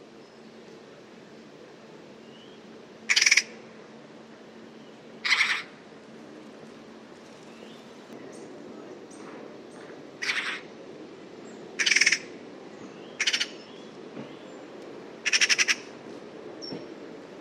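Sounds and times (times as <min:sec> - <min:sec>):
bird giving rough pulsed pi pi pi pi calls: 0:03.1 - 0:03.6, 0:05.2 - 0:05.7, 0:10.2 - 0:10.7, 0:11.8 - 0:12.3, 0:13.2 - 0:13.6, 0:15.2 - 0:15.9.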